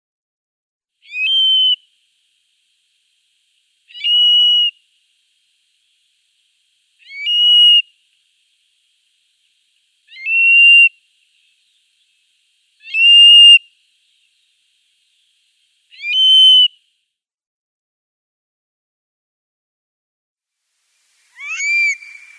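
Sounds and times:
stone curlew giving wailing whistled calls: 0:01.0 - 0:01.9, 0:03.9 - 0:04.8, 0:07.0 - 0:07.9, 0:10.0 - 0:11.0, 0:12.8 - 0:14.2, 0:15.9 - 0:16.8, 0:21.3 - 0:22.3.

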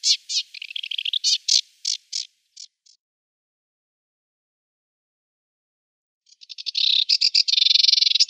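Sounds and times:
sedge warbler singing: 0:00.0 - 0:03.0, 0:06.3 - 0:08.2.

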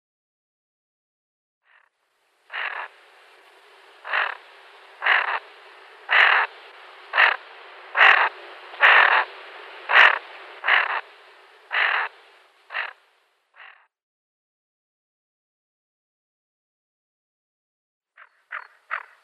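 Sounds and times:
female greater scaup rasping calls: 0:02.5 - 0:13.0, 0:18.2 - 0:19.2.

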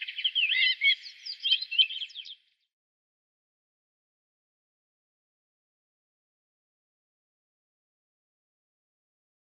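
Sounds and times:
redwing song with scratchy chattering twitter and whistled notes: 0:00.0 - 0:02.5.

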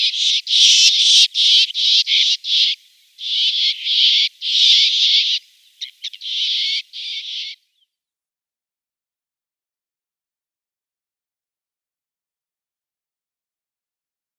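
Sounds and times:
Great Grey Shrike nestlings calling: 0:00.0 - 0:07.6.

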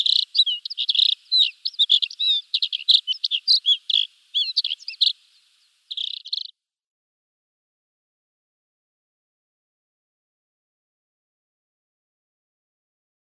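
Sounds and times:
Alpine accentor singing lively trilled warbling: 0:00.0 - 0:06.6.

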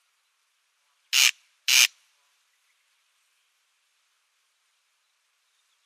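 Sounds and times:
Corn crake display call, harsh grating crex-crex rasps: 0:01.1 - 0:01.9.

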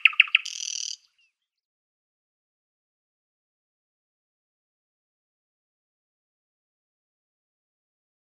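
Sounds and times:
Thrush nightingale song: 0:00.0 - 0:01.5.

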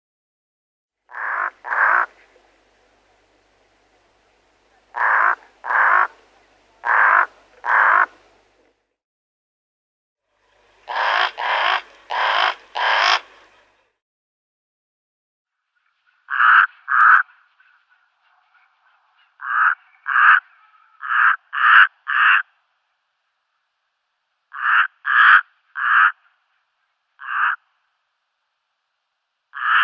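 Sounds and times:
brown-necked raven croaking: 0:01.1 - 0:02.4, 0:04.8 - 0:08.3, 0:10.8 - 0:13.3, 0:16.3 - 0:17.3, 0:19.3 - 0:22.6, 0:24.5 - 0:26.4, 0:27.2 - 0:27.9, 0:29.5 - 0:29.8.

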